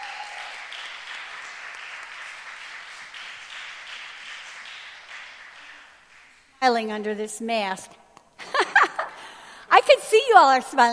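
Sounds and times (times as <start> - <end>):
church congregation applause welcoming a guest speaker: 0.0 - 6.4
speech: 6.6 - 8.0, 10.2 - 10.9.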